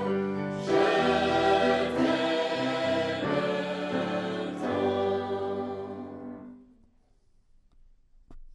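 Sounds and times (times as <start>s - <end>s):
chanting: 0.0s - 6.2s.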